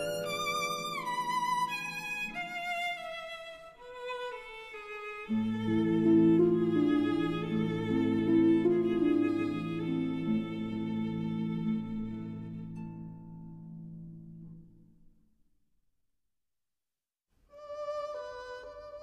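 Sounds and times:
berceuse for violin and harp: 0.0 - 13.7, 17.5 - 19.0.

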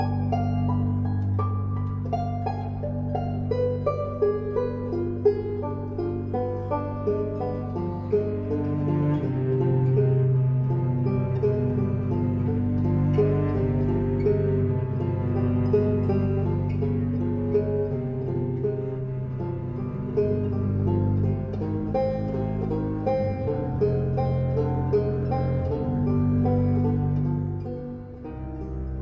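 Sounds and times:
banjo: 0.0 - 29.0
bass: 0.0 - 29.0
cello: 0.0 - 29.0.

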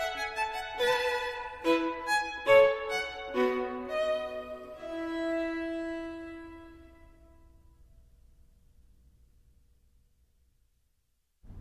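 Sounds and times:
violin: 0.0 - 7.4.

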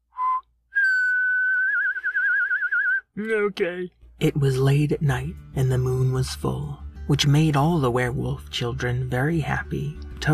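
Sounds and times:
person whistling: 0.0 - 3.1
speech: 3.2 - 10.3.

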